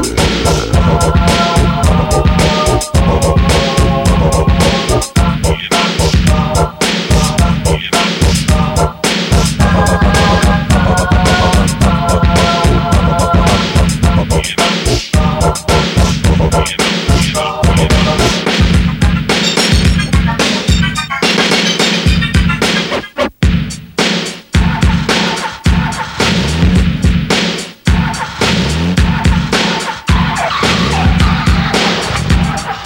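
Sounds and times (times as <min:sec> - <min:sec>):
beatboxing: 0:00.0 - 0:32.8.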